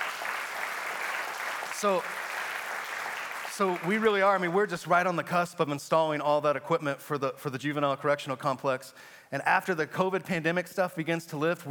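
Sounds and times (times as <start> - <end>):
congregation clapping during a church service: 0.0 - 4.8
speech: 1.8 - 2.2, 3.6 - 11.6.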